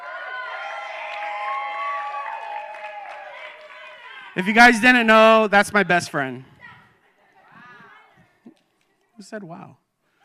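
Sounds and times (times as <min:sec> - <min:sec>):
audience cheering and applauding: 0:00.0 - 0:05.9
speech: 0:04.4 - 0:06.5, 0:09.3 - 0:09.8.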